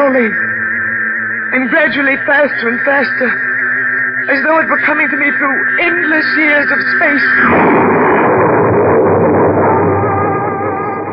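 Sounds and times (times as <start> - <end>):
speech: 0.0 - 0.6, 1.5 - 3.5, 4.2 - 8.0
ear-shattering thunderclap: 7.4 - 10.9.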